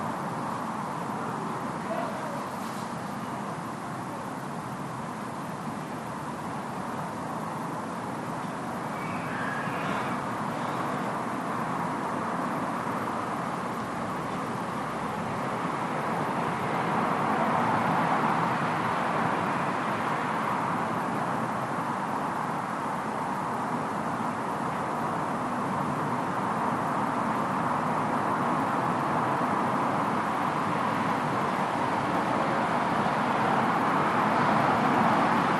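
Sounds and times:
distant evening traffic in a residential area: 0:00.0 - 0:35.5
distant evening voices in a residential area: 0:00.9 - 0:04.2, 0:08.4 - 0:15.4.

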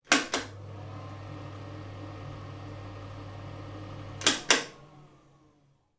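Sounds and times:
household bathroom pull cord light switch: 0:00.1 - 0:00.5, 0:04.2 - 0:04.8
bathroom extractor fan running: 0:00.4 - 0:05.8.

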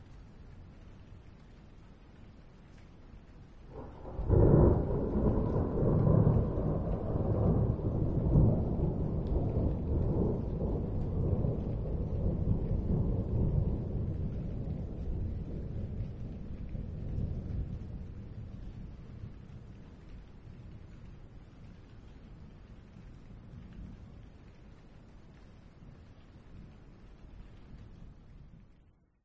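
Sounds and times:
very light rain: 0:00.0 - 0:29.2
distant thunder or thunder high above: 0:03.7 - 0:20.8.

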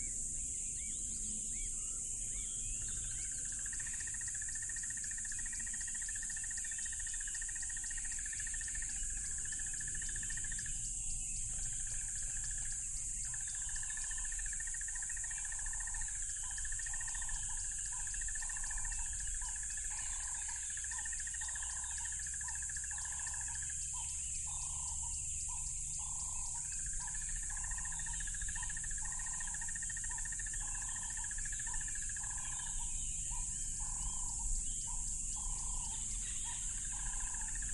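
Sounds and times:
crickets droning: 0:00.0 - 0:37.7.

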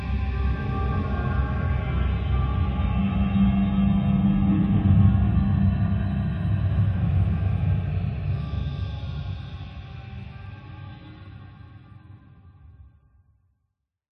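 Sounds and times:
science fiction forcefield energy source dark deep mysterious eerie: 0:00.0 - 0:10.8.

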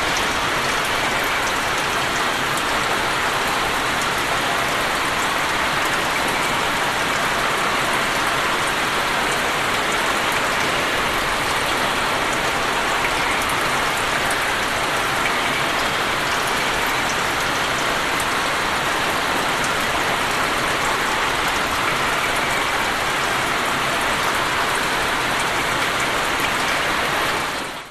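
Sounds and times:
rain on a metal roof of an abandoned industrial warehouse: 0:00.0 - 0:27.8
roof leaks dripping in an abandoned industrial warehouse: 0:00.0 - 0:27.8.

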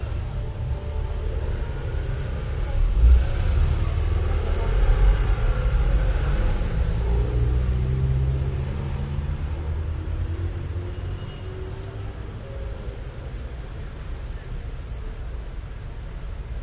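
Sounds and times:
Athens side street ambience on a weekday evening: 0:00.0 - 0:16.6.

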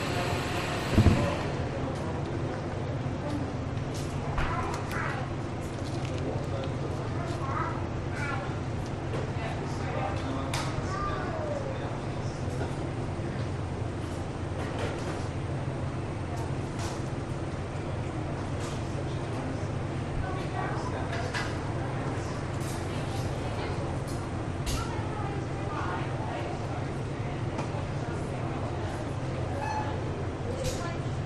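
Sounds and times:
cafe coffee shop machines whirring: 0:00.0 - 0:01.8
people in a cafe coffee shop: 0:00.0 - 0:31.2.

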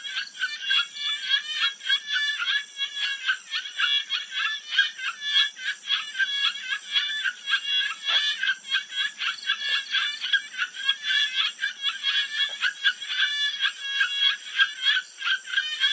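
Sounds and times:
frogs giving mating calls at a jungle pond at night in Thailand: 0:00.0 - 0:15.9.

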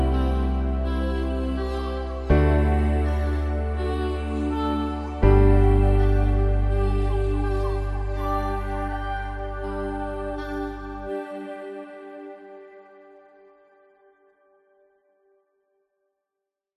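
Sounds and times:
bass: 0:00.0 - 0:11.2
warm soft slow piano in chilled game music: 0:00.0 - 0:12.7
warm synth pads: 0:00.0 - 0:13.5.

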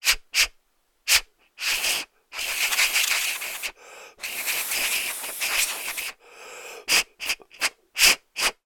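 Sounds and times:
person blowing dust out of a plastic cavity: 0:01.1 - 0:06.2, 0:06.8 - 0:08.6.

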